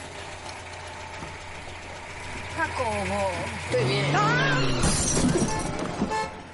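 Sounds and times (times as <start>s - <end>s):
speech: 2.6s - 5.7s
car bumper smashing: 4.8s - 6.4s.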